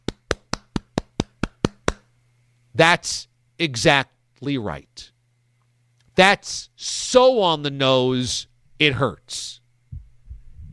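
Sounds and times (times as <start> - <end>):
single pair of hands giving slow applause: 0.0 - 2.1
faint low hum: 0.0 - 10.7
speech: 2.8 - 5.1, 6.2 - 9.6.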